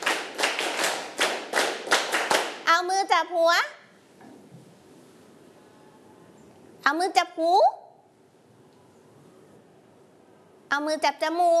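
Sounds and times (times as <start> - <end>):
children clapping their hands during a class lesson: 0.0 - 2.7
speech: 3.2 - 3.8, 6.9 - 7.8, 10.7 - 11.5.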